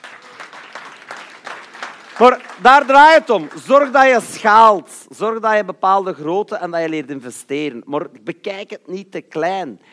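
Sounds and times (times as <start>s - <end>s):
applause: 0.0s - 4.7s
speech: 2.2s - 9.9s.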